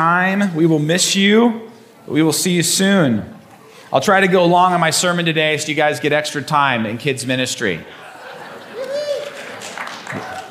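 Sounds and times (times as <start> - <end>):
speech: 0.0 - 8.1, 10.1 - 10.4
laughter: 7.8 - 10.4
scattered polite applause from audience: 8.6 - 10.4.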